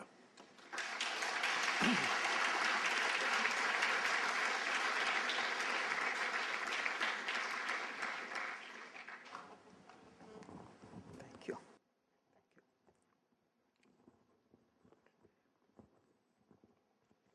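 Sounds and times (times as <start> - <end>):
audience applause welcoming a speaker to the podium at an academic lecture: 0.0 - 9.7.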